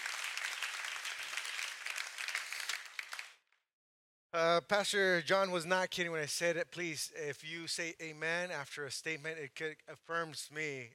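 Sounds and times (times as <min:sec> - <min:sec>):
audience applause: 0:00.0 - 0:03.4
speech: 0:04.4 - 0:10.9.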